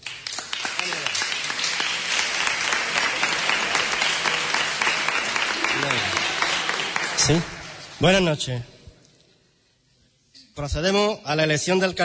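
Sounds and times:
audience applause: 0:00.0 - 0:08.2
speech: 0:07.2 - 0:08.8, 0:10.6 - 0:12.0.

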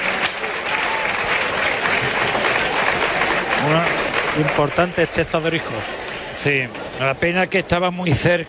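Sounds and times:
bullring crowd applause: 0:00.0 - 0:07.0
speech: 0:04.4 - 0:08.4.

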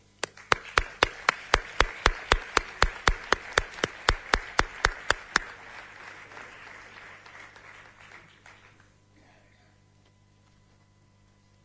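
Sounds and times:
audience applause: 0:00.2 - 0:09.0.

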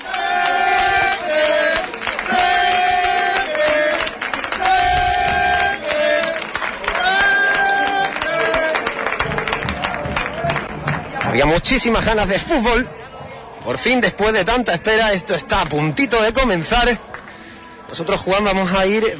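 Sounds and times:
applause: 0:00.0 - 0:12.1, 0:16.8 - 0:17.5
football fans cheering in stadium: 0:00.0 - 0:12.9
speech: 0:11.4 - 0:13.0, 0:13.6 - 0:17.1, 0:17.9 - 0:19.1.

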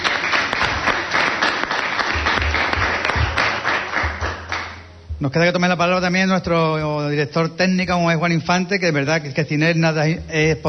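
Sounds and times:
audience applause: 0:00.0 - 0:04.8
speech: 0:05.2 - 0:10.6.

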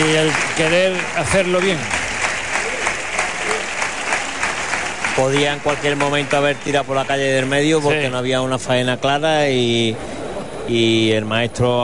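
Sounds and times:
bullfight crowd applauding a bullfighter: 0:00.0 - 0:08.3
speech: 0:00.1 - 0:02.0, 0:05.2 - 0:10.1, 0:10.7 - 0:11.8.

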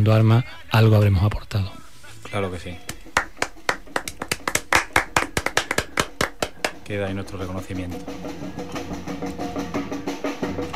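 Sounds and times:
speech: 0:00.0 - 0:02.9, 0:06.9 - 0:10.0
small group clapping: 0:02.8 - 0:06.9.

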